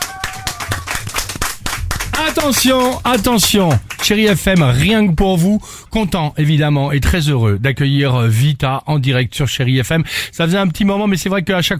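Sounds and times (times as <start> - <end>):
audience applause: 0.0 - 5.1
speech: 2.2 - 11.7.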